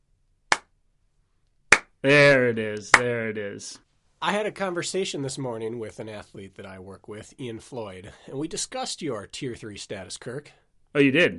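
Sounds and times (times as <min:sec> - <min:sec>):
hand clap: 0:00.5 - 0:00.7, 0:01.7 - 0:02.0, 0:02.8 - 0:03.1
speech: 0:02.0 - 0:11.3.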